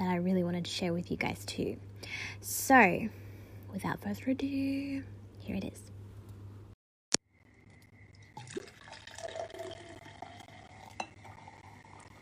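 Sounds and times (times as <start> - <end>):
speech: 0.6 - 5.9
liquid pouring into a glass: 7.7 - 12.1
glass clink: 10.9 - 11.4.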